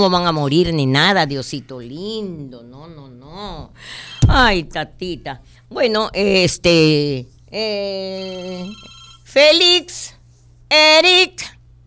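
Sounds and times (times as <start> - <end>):
speech: 0.0 - 11.6
telephone ringing for an incoming call to a radio show: 3.9 - 4.4, 8.2 - 9.3.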